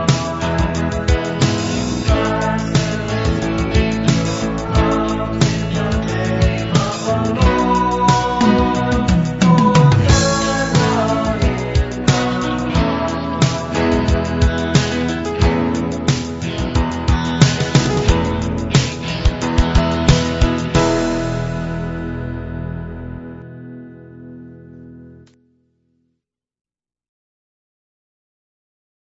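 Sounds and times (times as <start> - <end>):
drums: 0.0 - 22.6.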